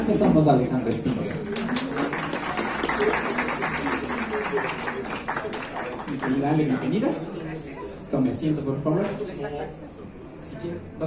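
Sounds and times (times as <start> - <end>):
speech: 0.1 - 1.6, 6.2 - 7.4, 8.1 - 11.0
audience applause welcoming guest: 1.2 - 7.2.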